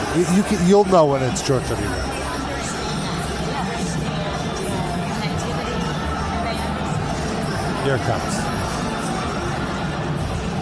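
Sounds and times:
talk-show studio audience murmuring and chattering excitedly: 0:00.0 - 0:10.5
speech: 0:00.2 - 0:02.1, 0:07.9 - 0:08.4.

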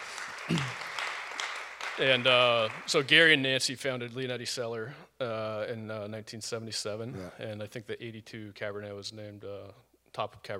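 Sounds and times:
audience applause: 0:00.0 - 0:03.1
speech: 0:00.5 - 0:00.8, 0:02.0 - 0:10.5.

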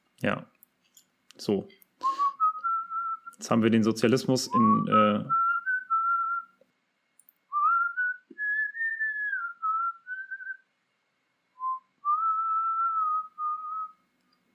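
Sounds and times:
speech: 0:00.2 - 0:00.5, 0:01.4 - 0:01.8, 0:03.4 - 0:05.4
person whistling a rock ballad melody: 0:02.0 - 0:03.4, 0:04.5 - 0:06.5, 0:07.5 - 0:10.6, 0:11.6 - 0:14.0.

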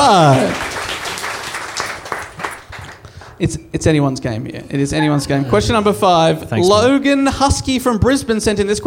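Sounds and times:
speech: 0:00.0 - 0:00.6, 0:03.4 - 0:08.8
applause: 0:00.0 - 0:03.4.

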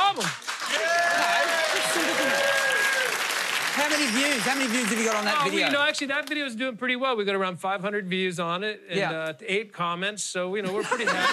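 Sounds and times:
weak applause: 0:00.1 - 0:06.4
speech: 0:04.0 - 0:11.3
laughter: 0:10.6 - 0:11.3.

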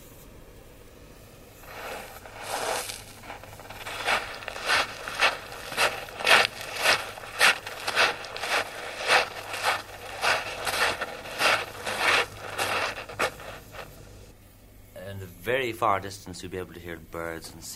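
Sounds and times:
footsteps crunching across a beach: 0:01.6 - 0:14.3
speech: 0:15.6 - 0:17.7.

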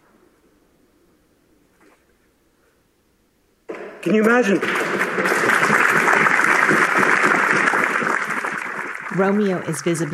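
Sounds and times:
colleagues clapping in parliament: 0:03.7 - 0:10.1
speech: 0:04.0 - 0:05.3, 0:09.2 - 0:10.1.

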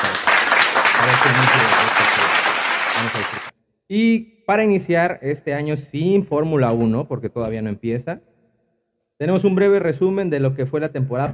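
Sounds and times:
applause: 0:00.0 - 0:03.5
speech: 0:01.0 - 0:01.8, 0:03.0 - 0:08.3, 0:09.2 - 0:11.3.

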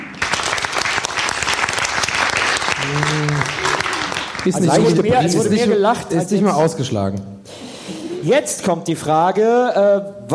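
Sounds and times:
audience applause: 0:00.0 - 0:05.5
low voice or hum: 0:02.8 - 0:03.8, 0:04.5 - 0:06.8
speech: 0:04.4 - 0:07.4, 0:08.2 - 0:10.3.

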